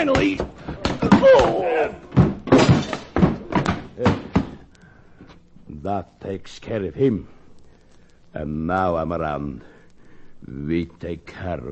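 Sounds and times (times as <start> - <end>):
speech: 0.0 - 0.6, 1.2 - 2.0, 4.0 - 4.2, 5.8 - 7.4, 8.4 - 9.7, 10.4 - 11.7
door slamming shut in a scuffle: 0.1 - 4.6.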